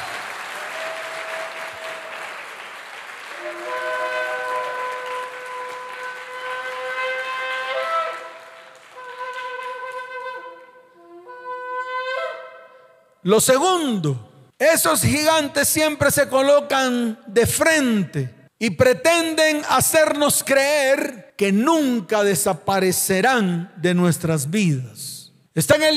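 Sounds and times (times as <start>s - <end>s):
trumpet blast: 0.0s - 2.5s, 3.2s - 13.0s
speech: 13.2s - 25.9s.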